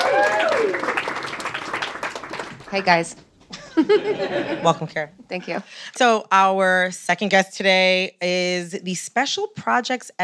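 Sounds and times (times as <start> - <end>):
audience applause welcoming a podcast guest: 0.0 - 3.0
speech: 2.7 - 10.2
laughter: 3.5 - 5.0.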